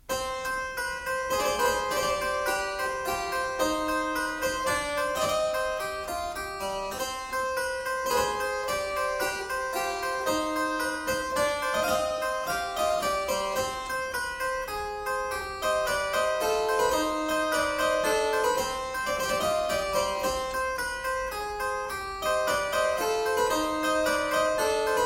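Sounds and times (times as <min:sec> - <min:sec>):
ground bass piece in D minor: 0:00.0 - 0:25.0.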